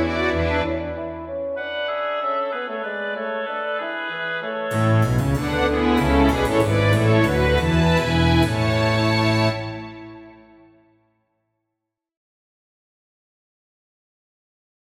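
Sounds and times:
orchestral suite courante: 0.0s - 10.6s.

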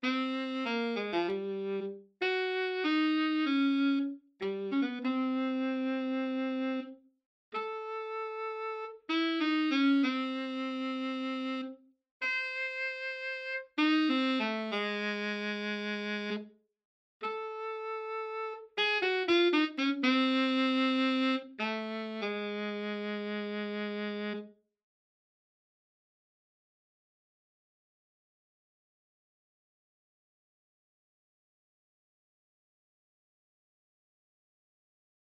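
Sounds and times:
saxophone solo: 0.0s - 7.0s, 7.6s - 16.5s, 17.2s - 24.6s.

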